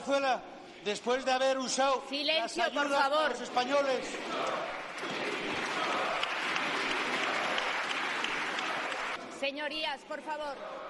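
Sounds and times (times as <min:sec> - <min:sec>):
speech: 0:00.0 - 0:05.3, 0:09.4 - 0:10.8
parliamentary applause and ovation: 0:03.5 - 0:09.2.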